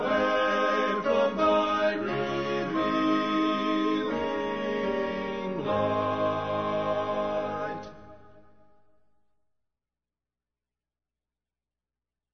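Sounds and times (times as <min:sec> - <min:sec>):
men's choir singing: 0:00.0 - 0:08.3.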